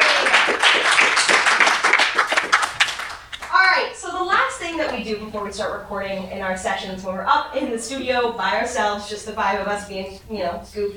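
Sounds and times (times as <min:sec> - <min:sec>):
audience applause: 0:00.0 - 0:03.6
speech: 0:05.0 - 0:10.9.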